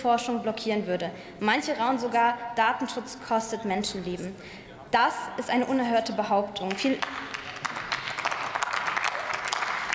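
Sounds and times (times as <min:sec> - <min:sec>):
speech: 0:00.0 - 0:07.3
parliament members applauding: 0:06.6 - 0:09.9.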